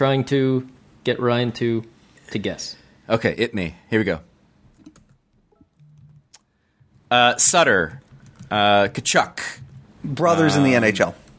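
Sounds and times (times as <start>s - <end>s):
speech: 0.0s - 5.0s, 7.1s - 11.2s
keyboard key presses to start a timer: 4.7s - 7.0s, 7.7s - 8.6s.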